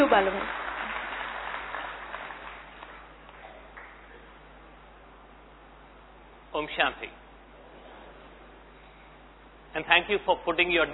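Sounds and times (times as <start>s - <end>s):
speech: 0.0s - 0.6s, 6.6s - 7.2s, 9.8s - 10.9s
audience applause: 0.0s - 4.1s.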